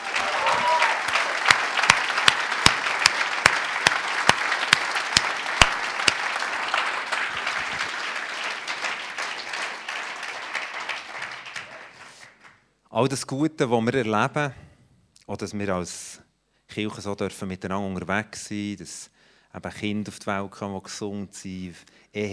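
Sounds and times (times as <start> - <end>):
applause: 0.0 - 12.7
speech: 13.0 - 14.6, 15.3 - 16.2, 16.8 - 22.3.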